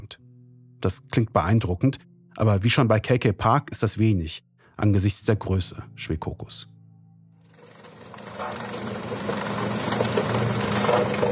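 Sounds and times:
speech: 0.8 - 6.7
steamroller crushing seized electronic devices: 7.6 - 11.2.

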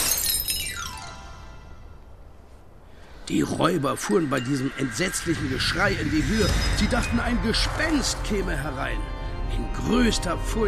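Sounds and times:
window glass panes shattering: 0.0 - 1.1
speech: 3.3 - 10.6.

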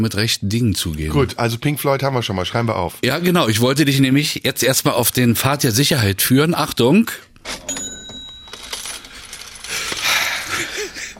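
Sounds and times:
speech: 0.0 - 7.8
cash register rattling and ringing: 7.4 - 10.0
coins clinking: 7.5 - 10.7.

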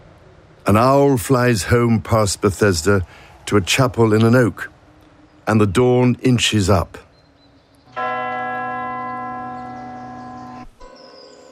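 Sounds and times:
speech: 0.7 - 4.7, 5.5 - 7.0
town hall bell ringing: 7.9 - 11.5.

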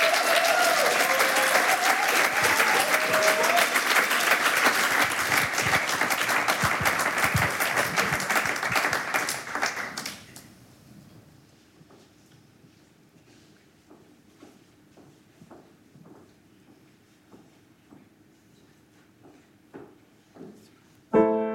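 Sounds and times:
audience applause: 0.0 - 10.3.

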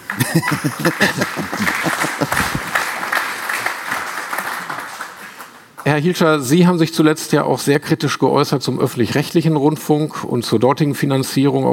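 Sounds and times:
laughter: 0.0 - 3.6
audience applause: 0.0 - 5.9
speech: 0.1 - 2.6, 5.9 - 11.7.

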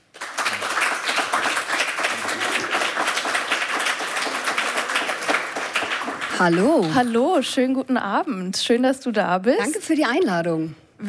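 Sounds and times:
audience applause for a guest: 0.0 - 7.1
speech: 6.4 - 11.0.

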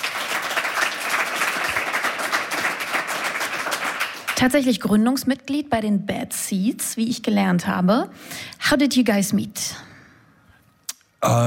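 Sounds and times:
audience applause at a live interview event: 0.0 - 4.4
speech: 4.4 - 9.9, 11.2 - 11.4.

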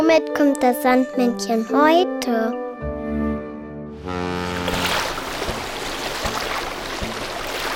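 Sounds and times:
speech: 0.1 - 2.6
steamboat on the water: 4.0 - 7.7.

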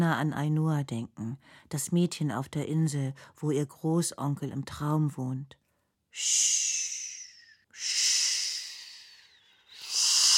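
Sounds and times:
speech: 0.0 - 7.0, 7.8 - 8.2
voice imitating surf with shushing: 6.1 - 10.3.

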